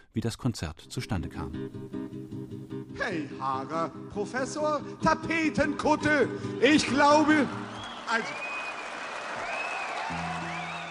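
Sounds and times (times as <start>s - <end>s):
speech: 0.2s - 8.5s, 10.1s - 10.4s
concert audience in Leipzig applauding and cheering: 6.6s - 10.8s
whistle-like shouts: 7.0s - 10.8s.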